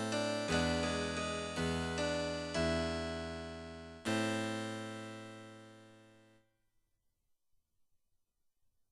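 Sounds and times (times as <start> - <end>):
harpsichord chords: 0.0 - 5.9.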